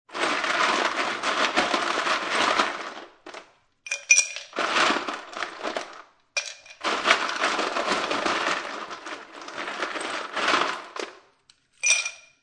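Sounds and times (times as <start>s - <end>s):
ice cubes grabbed from freezer and placed into a plastic cup: 0.1s - 12.0s.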